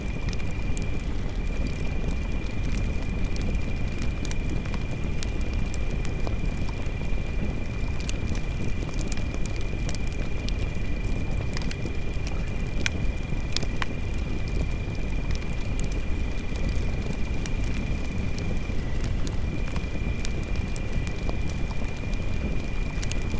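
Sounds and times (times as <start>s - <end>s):
campfire at night: 0.0s - 23.3s.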